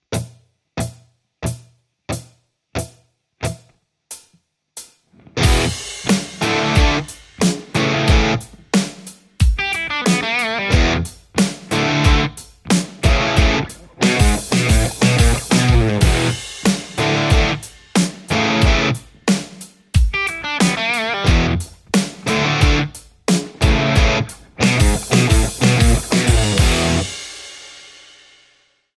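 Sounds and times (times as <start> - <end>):
Telecaster electric guitar: 5.2 - 8.7, 9.6 - 17.6, 18.3 - 19.2, 20.1 - 27.1.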